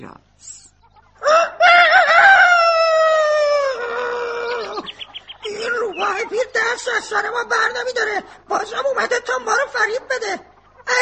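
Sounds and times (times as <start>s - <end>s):
speech: 0.0s - 0.6s, 7.0s - 11.0s
rooster crowing: 1.2s - 6.3s.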